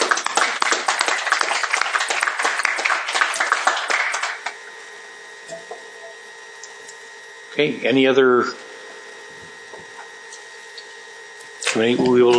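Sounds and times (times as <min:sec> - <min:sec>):
group applauding: 0:00.0 - 0:04.6
faint hum: 0:00.0 - 0:12.3
speech: 0:07.6 - 0:08.6, 0:11.8 - 0:12.3.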